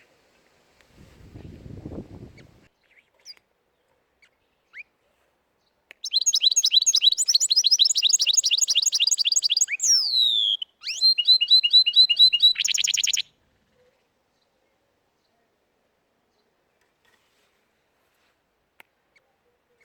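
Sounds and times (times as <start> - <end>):
canary singing: 6.0 - 13.3.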